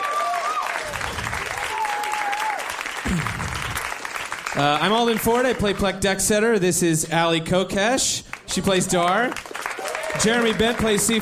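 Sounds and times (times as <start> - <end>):
audience applause for the sound designer at a live show: 0.0 - 5.7, 8.5 - 11.2
speech: 4.6 - 9.5, 10.2 - 11.2.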